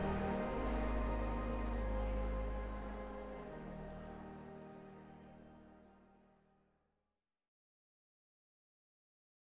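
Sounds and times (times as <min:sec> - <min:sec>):
organ prelude: 0:00.0 - 0:06.2.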